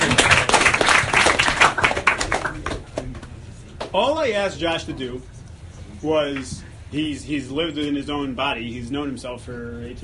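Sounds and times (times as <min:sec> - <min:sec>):
audience applause: 0:00.0 - 0:03.1
speech: 0:03.9 - 0:05.4, 0:06.0 - 0:10.0.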